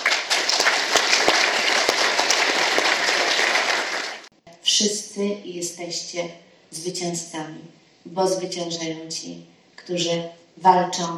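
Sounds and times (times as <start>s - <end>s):
crowd applause: 0.0s - 4.3s
speech: 4.8s - 11.1s.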